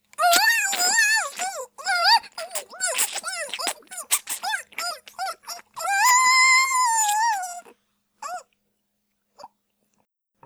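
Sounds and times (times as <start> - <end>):
swallowing: 0.0 - 7.7.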